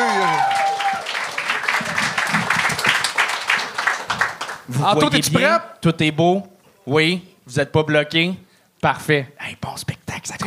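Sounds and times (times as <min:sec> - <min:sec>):
applause from a live audience: 0:00.0 - 0:04.9
speech: 0:04.7 - 0:09.9.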